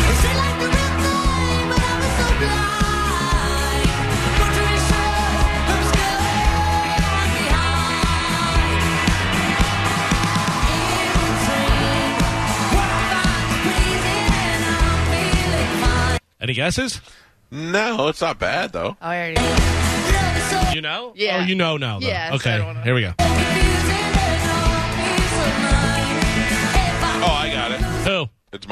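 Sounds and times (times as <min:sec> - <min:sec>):
band with bass drums and layered melody: 0:00.0 - 0:16.2, 0:19.1 - 0:28.1
female singer performing a cover song: 0:00.2 - 0:08.9, 0:10.6 - 0:12.4, 0:13.0 - 0:16.2, 0:20.4 - 0:22.4, 0:23.3 - 0:27.8
speech: 0:16.6 - 0:19.8, 0:20.7 - 0:23.4, 0:28.1 - 0:28.7.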